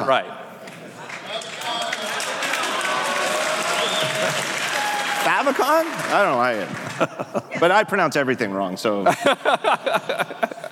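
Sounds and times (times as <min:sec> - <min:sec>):
speech: 0:00.0 - 0:00.4, 0:05.2 - 0:10.7
large crowd applause: 0:01.0 - 0:07.5
laughter: 0:06.8 - 0:07.9, 0:09.0 - 0:10.7.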